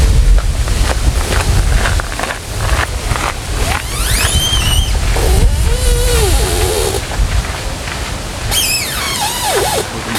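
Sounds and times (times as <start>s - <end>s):
wind rumbling along the river in Odense: 0.0s - 10.1s
passing recreational runners' footsteps: 0.1s - 8.5s
tree branches squeaking in the wind: 3.6s - 7.1s, 8.4s - 10.1s.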